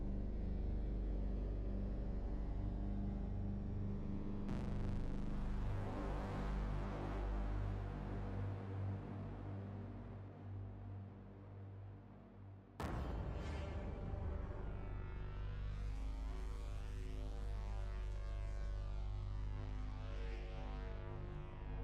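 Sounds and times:
dark ambient synth: 0.2s - 21.8s
cinematic dark sound effects: 12.8s - 16.2s.

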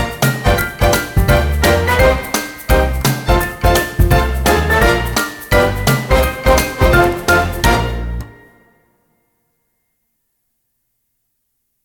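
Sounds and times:
happy jazz: 0.0s - 8.6s.

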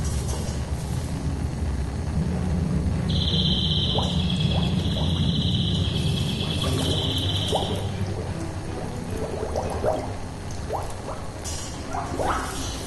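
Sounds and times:
laboratory ambient soundscape: 0.0s - 12.8s.

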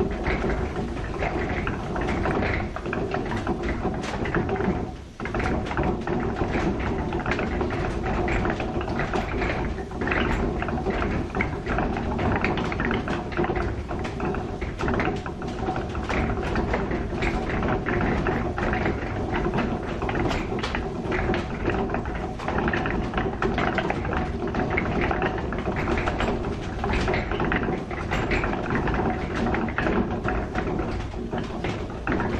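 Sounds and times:
wooden gears turning: 0.0s - 32.3s.

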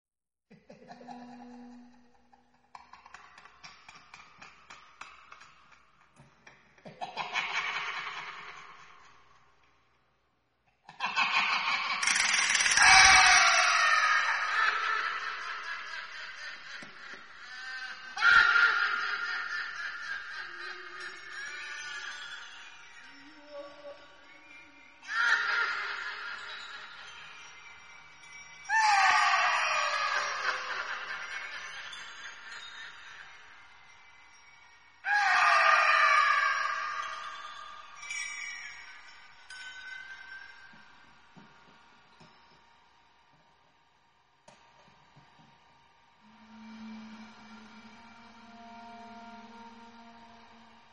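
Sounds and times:
horror laughter: 0.6s - 5.7s, 6.5s - 9.5s, 10.9s - 23.1s, 25.0s - 27.5s, 28.7s - 33.5s, 35.1s - 37.9s.

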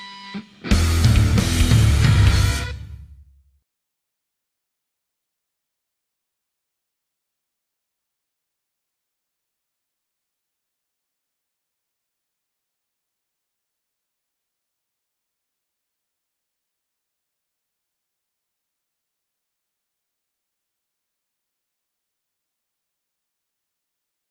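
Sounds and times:
karaoke instrumental track without vocals: 0.0s - 3.1s.

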